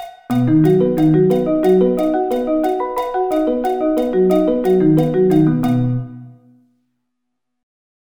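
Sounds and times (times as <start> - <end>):
arpeggio inversions: 0.3 - 6.5.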